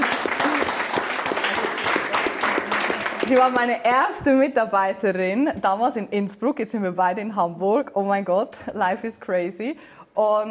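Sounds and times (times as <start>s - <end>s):
audience applause: 0.0s - 3.7s
speech: 3.3s - 10.4s.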